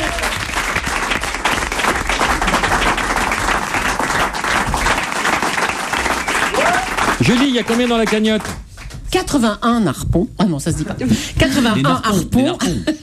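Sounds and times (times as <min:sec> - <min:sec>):
audience applause: 0:00.0 - 0:08.6
speech: 0:07.2 - 0:13.0.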